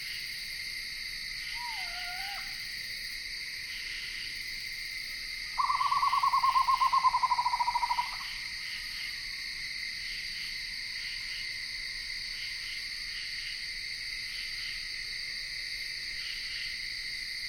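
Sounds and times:
insects in Ithaca New York: 0:00.0 - 0:17.4
screech owl calling in Ithaca New York: 0:01.5 - 0:02.6, 0:05.6 - 0:08.3.

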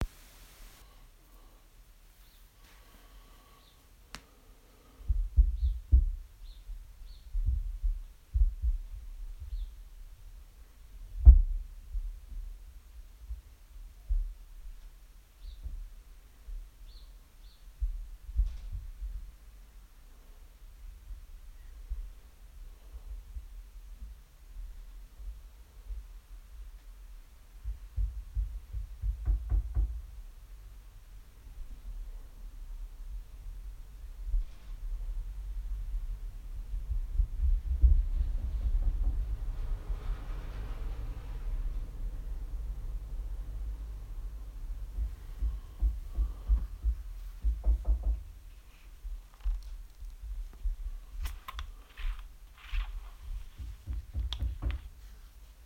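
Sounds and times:
noise: 0:00.0 - 0:55.6.

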